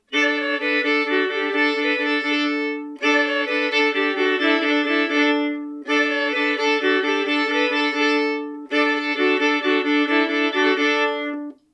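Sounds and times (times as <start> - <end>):
jig tune: 0.1 - 11.6.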